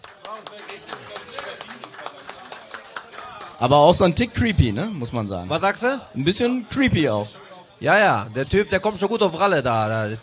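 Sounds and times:
applause: 0.0s - 4.1s
speech: 3.6s - 10.2s.

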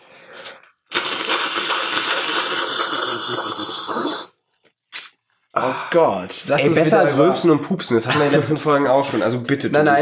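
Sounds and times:
nose blowing: 0.0s - 5.2s
speech: 5.6s - 9.9s.

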